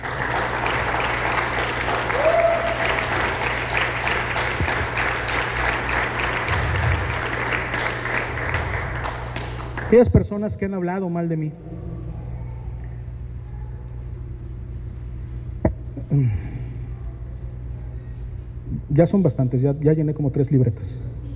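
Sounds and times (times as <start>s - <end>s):
audience applauding: 0.0s - 10.1s
speech: 9.9s - 11.8s, 16.1s - 16.5s, 19.0s - 21.2s.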